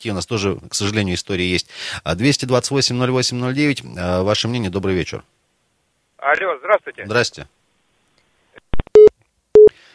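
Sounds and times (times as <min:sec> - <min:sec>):
speech: 0:00.0 - 0:05.4, 0:06.2 - 0:07.6
telephone busy tone after dropped phone call: 0:09.0 - 0:09.7.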